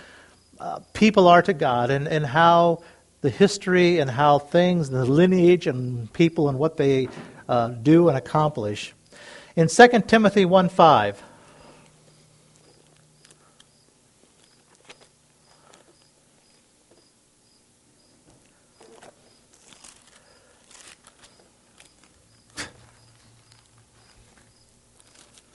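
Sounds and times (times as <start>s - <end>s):
speech: 0.6s - 9.0s, 9.6s - 11.3s
cricket chirping during a church worship service: 12.1s - 19.5s, 21.3s - 24.8s.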